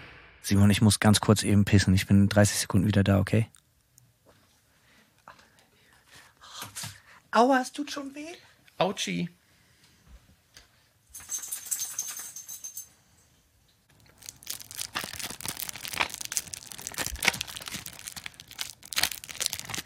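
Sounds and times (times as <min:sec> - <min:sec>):
speech: 0:00.4 - 0:03.6, 0:07.4 - 0:09.4
plastic packaging crinkling and tearing as new tape is unwrapped: 0:13.9 - 0:19.8.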